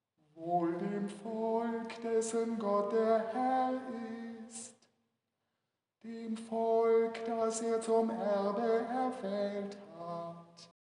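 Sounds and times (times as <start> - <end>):
psalm tone chanting: 0.3 - 4.8, 6.0 - 10.7.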